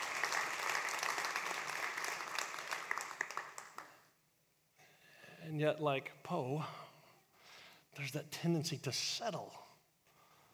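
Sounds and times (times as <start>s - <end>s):
audience clapping: 0.0s - 4.1s
speech: 5.5s - 6.8s, 8.0s - 9.7s.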